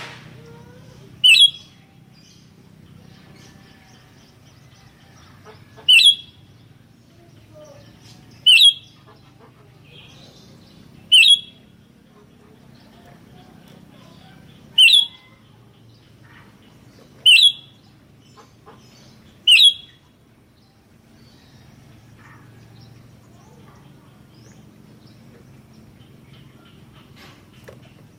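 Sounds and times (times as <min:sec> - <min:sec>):
sooty-headed bulbul whistling: 0:01.2 - 0:01.8, 0:05.8 - 0:06.4, 0:08.4 - 0:09.0, 0:11.1 - 0:11.7, 0:14.7 - 0:15.3, 0:17.2 - 0:17.8, 0:19.5 - 0:20.0.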